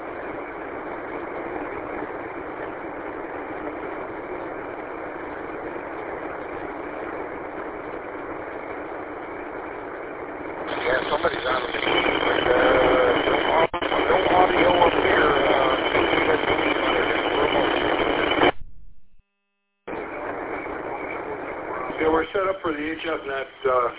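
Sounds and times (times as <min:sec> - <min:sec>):
unsquelched HF radio receiver noise: 0:00.0 - 0:18.8, 0:19.9 - 0:23.9.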